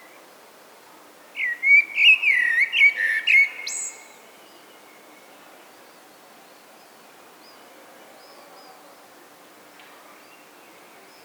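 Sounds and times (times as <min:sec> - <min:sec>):
common blackbird singing: 0:01.4 - 0:04.2.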